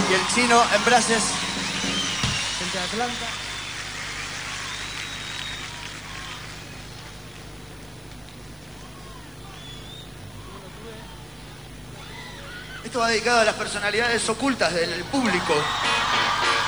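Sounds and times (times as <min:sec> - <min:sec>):
audience applause: 0:00.0 - 0:07.5, 0:15.1 - 0:16.6
speech: 0:00.1 - 0:01.4, 0:02.7 - 0:03.4, 0:12.9 - 0:16.6.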